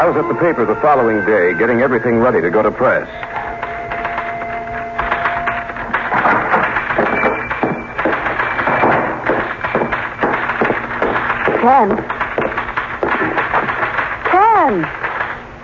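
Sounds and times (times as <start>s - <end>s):
speech: 0.2s - 3.3s, 11.8s - 12.1s
typing on a typewriter: 3.2s - 15.4s.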